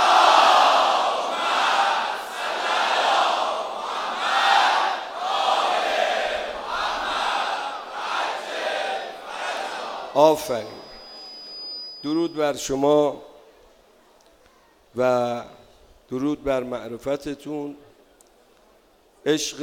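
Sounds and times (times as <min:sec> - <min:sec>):
large crowd chanting salawat in unison at a major Shia celebration: 0:00.0 - 0:10.5
speech: 0:10.2 - 0:10.8, 0:12.0 - 0:13.3, 0:14.9 - 0:17.8, 0:19.2 - 0:19.6.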